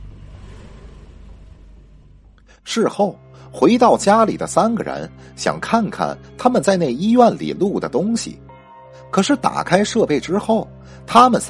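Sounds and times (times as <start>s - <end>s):
car engine roaring: 0.0s - 2.6s
speech: 2.6s - 8.5s, 9.1s - 11.4s.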